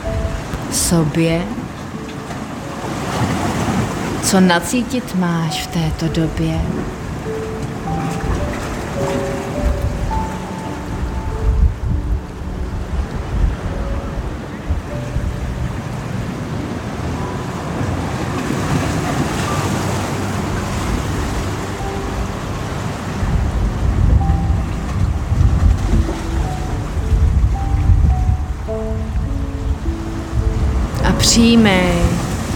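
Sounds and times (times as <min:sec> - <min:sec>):
breaking waves: 0:00.0 - 0:32.5
rushing water: 0:00.0 - 0:32.5
speech: 0:00.7 - 0:01.6, 0:04.3 - 0:07.0, 0:31.4 - 0:32.0.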